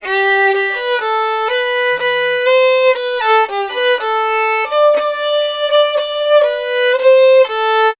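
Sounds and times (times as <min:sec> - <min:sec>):
Appalachian fiddle: 0:00.0 - 0:07.9.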